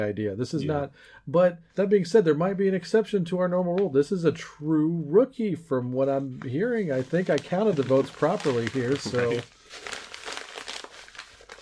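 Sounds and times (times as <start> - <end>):
speech: 0.0 - 10.0
award card envelope paper tearing open: 6.4 - 11.6.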